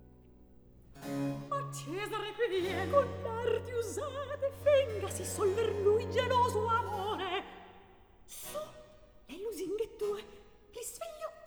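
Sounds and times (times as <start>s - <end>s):
recitative singing: 1.2s - 11.4s.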